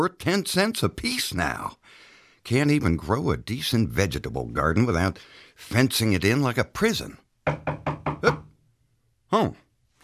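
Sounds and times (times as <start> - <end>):
speech: 0.0 - 8.4, 9.3 - 9.6
knocking on a door by a late visitor: 7.4 - 8.5.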